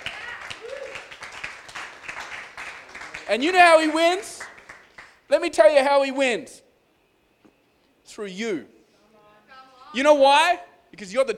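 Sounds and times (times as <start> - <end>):
audience clapping: 0.0 - 5.2
speech: 3.3 - 4.3, 5.3 - 6.6, 8.2 - 8.8, 10.0 - 11.3.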